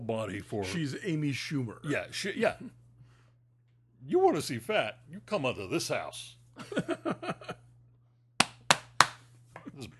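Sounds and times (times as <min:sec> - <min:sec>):
speech: 0:00.1 - 0:02.8, 0:04.0 - 0:07.6, 0:09.8 - 0:09.9
laughter: 0:06.6 - 0:07.7
hand slapping a belly: 0:08.4 - 0:09.3.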